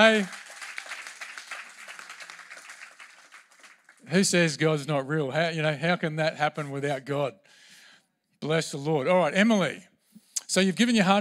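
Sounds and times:
speech: 0.0s - 0.4s, 4.1s - 7.6s, 8.4s - 9.9s, 10.5s - 11.1s
audience clapping: 0.0s - 4.5s.

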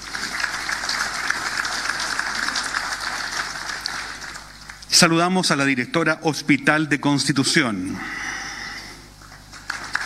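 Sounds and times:
crowd clapping: 0.0s - 4.9s, 9.2s - 10.0s
speech: 5.0s - 8.2s.

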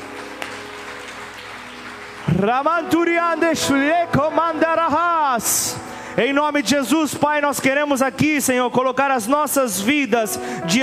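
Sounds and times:
applause: 0.0s - 3.5s
speech: 2.4s - 10.8s.

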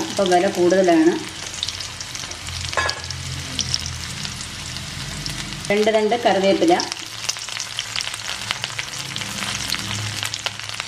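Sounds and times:
oil sizzling with dried red chillies, shallots and mustard seeds frying: 0.0s - 10.8s
speech: 0.2s - 1.4s, 5.7s - 7.0s.

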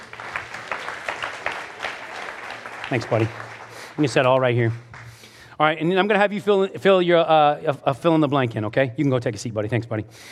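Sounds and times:
round of applause: 0.0s - 5.5s
speech: 2.9s - 4.9s, 5.6s - 10.2s.

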